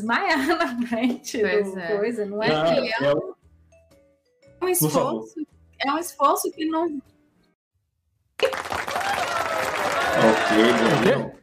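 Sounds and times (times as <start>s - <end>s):
speech: 0.0s - 3.4s, 4.6s - 7.1s, 10.2s - 11.4s
clapping hands: 8.4s - 11.4s
laughter: 9.8s - 11.4s.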